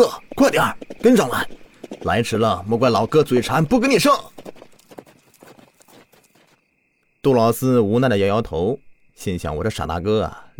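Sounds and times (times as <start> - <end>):
speech: 0.0 - 4.3, 7.2 - 10.5
horse hooves galloping: 0.0 - 6.8.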